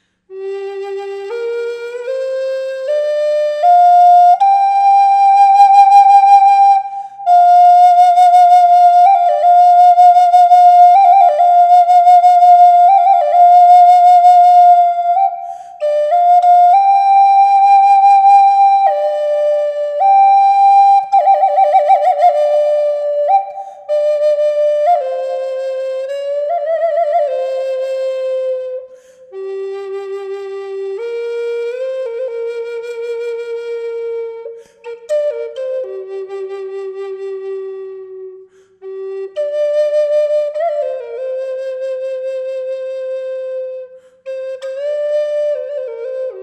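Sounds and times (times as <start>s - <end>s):
flute with reverb: 0.0s - 46.4s.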